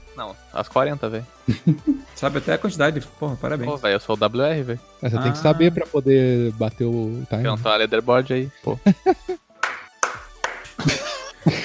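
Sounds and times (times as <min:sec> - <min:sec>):
speech: 0:00.2 - 0:09.5, 0:10.8 - 0:11.6
laughter: 0:01.5 - 0:02.7, 0:08.8 - 0:09.4, 0:10.8 - 0:11.6
slow clap: 0:09.6 - 0:11.1.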